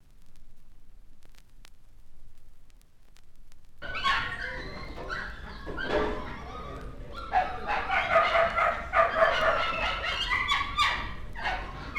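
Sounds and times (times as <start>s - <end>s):
dog barking: 3.8s - 6.2s, 7.2s - 11.9s.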